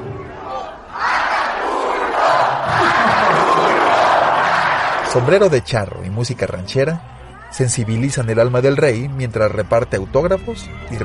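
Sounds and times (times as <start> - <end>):
stadium crowd cheering: 0.0 - 11.0
laughter: 2.3 - 4.8
speech: 5.2 - 11.0.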